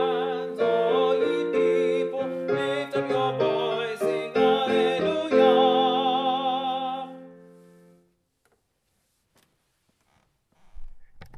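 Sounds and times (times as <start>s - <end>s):
tenor singing: 0.0s - 7.5s.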